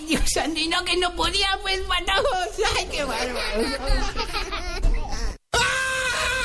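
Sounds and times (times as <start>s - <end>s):
speech: 0.2s - 4.8s
laughter: 2.2s - 5.4s
man screaming and groaning in pain from a toothache: 5.5s - 6.4s.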